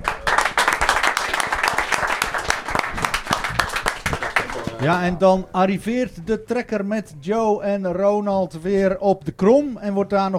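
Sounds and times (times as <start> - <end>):
applause: 0.0 - 5.1
speech: 4.8 - 10.3.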